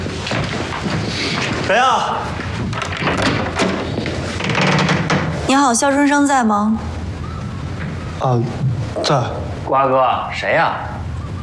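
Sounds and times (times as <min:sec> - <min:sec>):
footsteps: 0:00.0 - 0:05.5
speech: 0:01.7 - 0:02.3, 0:05.5 - 0:06.9, 0:08.2 - 0:11.0.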